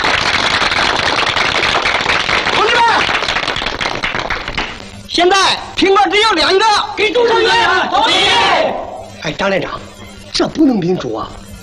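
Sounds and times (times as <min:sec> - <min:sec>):
group applause: 0:00.0 - 0:04.9
speech: 0:05.2 - 0:11.4.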